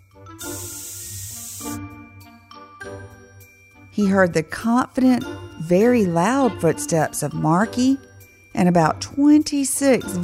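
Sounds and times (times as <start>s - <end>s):
aerosol can of hairspray hissing: 0.4s - 1.9s
speech: 4.0s - 10.2s.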